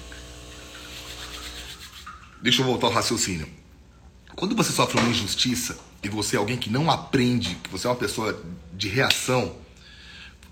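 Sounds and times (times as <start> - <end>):
coffee machine switching off by itself: 0.0 - 1.4
speech: 2.4 - 3.6, 4.4 - 9.6.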